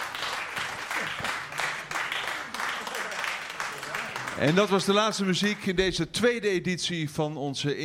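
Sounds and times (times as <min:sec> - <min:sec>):
audience applause after live jazz performance: 0:00.0 - 0:05.8
speech: 0:04.4 - 0:07.8.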